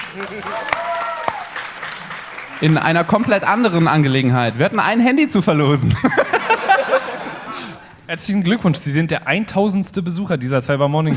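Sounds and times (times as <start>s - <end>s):
applause: 0.0s - 4.8s
speech: 0.1s - 1.0s, 2.6s - 6.3s, 8.1s - 11.1s
laughter: 5.8s - 8.0s.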